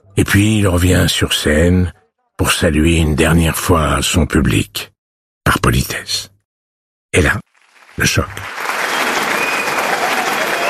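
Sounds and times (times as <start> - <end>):
speech: 0.2 - 4.9, 5.5 - 6.3, 7.1 - 8.6
audience applause, standing ovation: 7.6 - 10.6.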